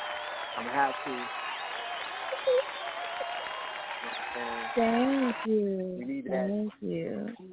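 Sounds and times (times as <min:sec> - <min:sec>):
round of applause: 0:00.0 - 0:05.5
speech: 0:00.6 - 0:01.4, 0:02.4 - 0:02.8, 0:04.0 - 0:07.5.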